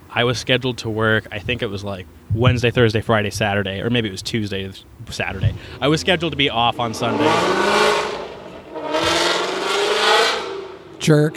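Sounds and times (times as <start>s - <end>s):
Ford Mustang engine roaring as the car accelerates past: 0.0s - 11.0s
speech: 0.1s - 7.9s, 11.1s - 11.3s.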